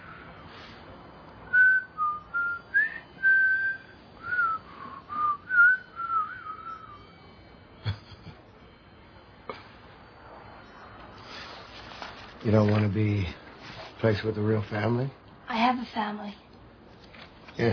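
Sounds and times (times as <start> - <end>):
person whistling imitating a wind chime: 1.5 - 7.1
speech: 12.5 - 13.4, 14.0 - 16.4, 17.6 - 17.7.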